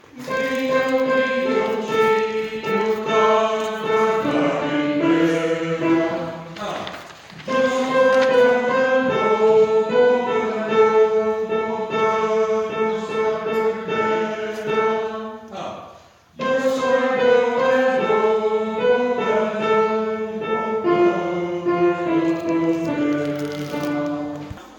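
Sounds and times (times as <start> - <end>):
tenor singing: 0.0 - 24.7.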